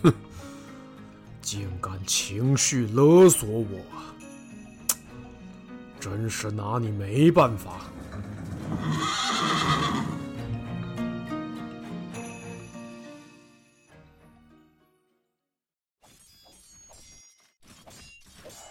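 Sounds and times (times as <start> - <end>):
speech: 0.0 - 0.2, 1.5 - 4.2, 6.0 - 9.5
hooves clopping: 7.7 - 10.2
horse neighing: 8.0 - 10.3.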